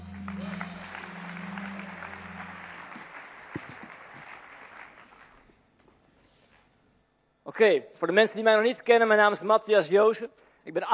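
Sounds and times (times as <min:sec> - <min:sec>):
audience applause: 0:00.0 - 0:05.6
speech: 0:07.5 - 0:10.9.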